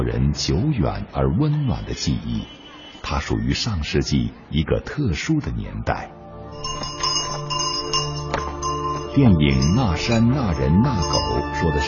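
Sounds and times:
speech: 0.0s - 6.2s, 9.2s - 11.8s
crisp bicycle bell ringing: 6.5s - 11.8s.

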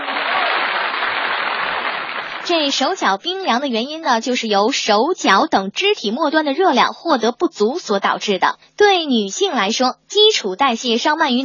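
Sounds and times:
cheering: 0.0s - 2.5s
applause: 0.0s - 2.9s
speech: 2.5s - 11.4s.

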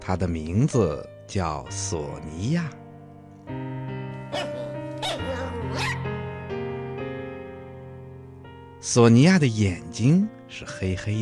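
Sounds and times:
speech: 0.0s - 2.8s, 3.5s - 3.7s, 8.8s - 11.2s
music: 0.0s - 11.2s
small dog barking: 4.3s - 6.1s.

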